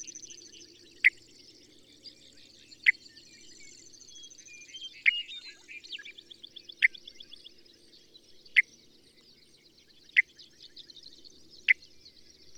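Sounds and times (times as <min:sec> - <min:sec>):
bird chirping: 0:00.0 - 0:12.5.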